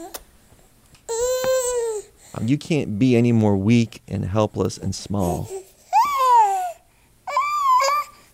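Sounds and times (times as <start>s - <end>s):
baby crying: 1.1s - 2.1s, 5.3s - 8.3s
speech: 2.3s - 5.6s.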